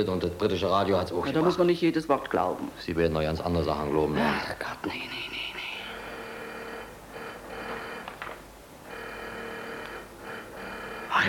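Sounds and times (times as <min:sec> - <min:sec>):
speech: 0:00.0 - 0:05.4
harsh buzzing electric doorbell: 0:06.1 - 0:08.1, 0:08.9 - 0:11.2.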